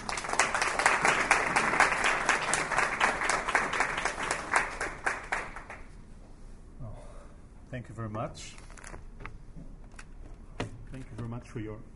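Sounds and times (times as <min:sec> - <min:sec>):
audience applause welcoming a professor before a lecture: 0:00.0 - 0:05.9
speech: 0:08.0 - 0:08.6, 0:11.0 - 0:11.9.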